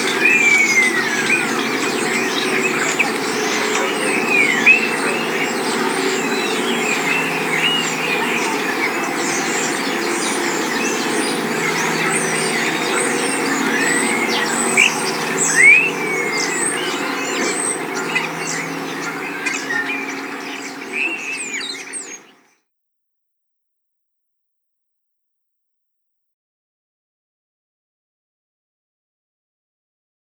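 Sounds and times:
birds singing in spring in a coastal town: 0:00.0 - 0:22.5.

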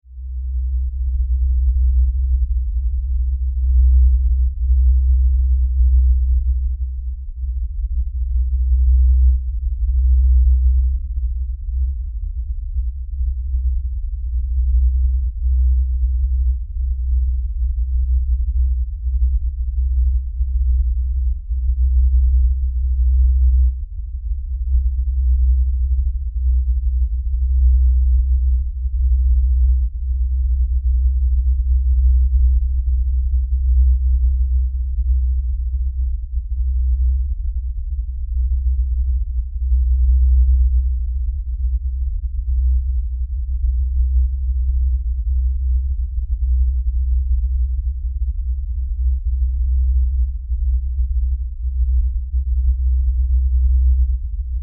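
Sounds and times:
LFE low frequency rumble: 0:00.0 - 0:54.6.

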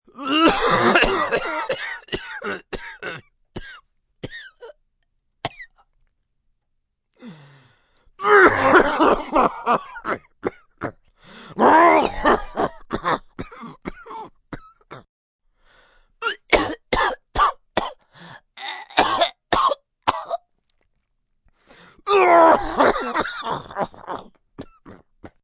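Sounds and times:
sick male smoker's cough: 0:00.2 - 0:04.6, 0:08.3 - 0:11.0, 0:11.9 - 0:15.1, 0:16.2 - 0:18.0, 0:19.0 - 0:20.3, 0:22.2 - 0:25.1.

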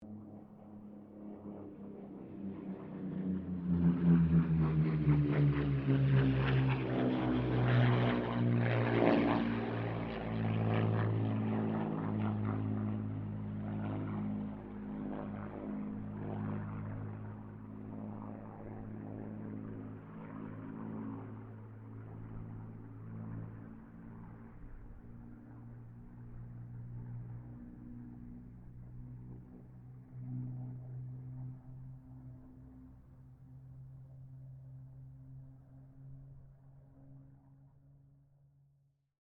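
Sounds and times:
distant Spitfire, Mustang and Kittyhawk aircraft passing: 0:00.0 - 0:38.7.

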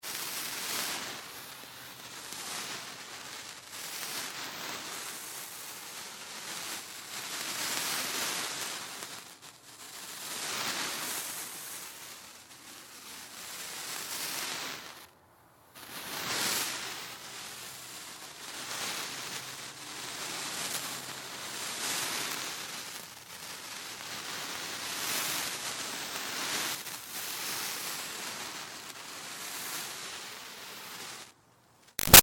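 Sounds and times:
fire sparkler burning and sizzling: 0:00.0 - 0:15.1, 0:15.8 - 0:31.4, 0:32.0 - 0:32.2.

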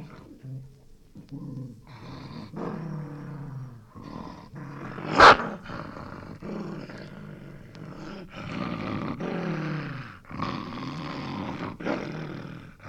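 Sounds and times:
angry dog growling and snapping: 0:00.0 - 0:12.8.

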